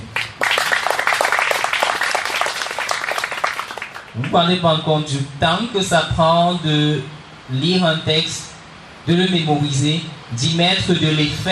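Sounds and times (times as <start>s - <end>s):
audience applause: 0.0s - 4.3s
speech: 4.2s - 11.4s.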